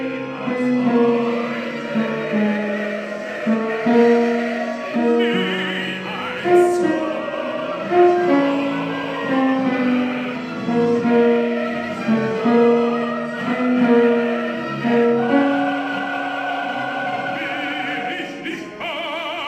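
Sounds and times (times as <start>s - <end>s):
tenors singing: 0.0s - 19.4s.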